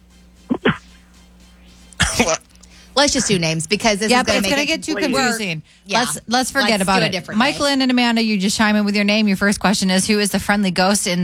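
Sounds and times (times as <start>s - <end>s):
person imitating a dog bark: 0.5s - 0.8s
speech: 2.2s - 11.2s.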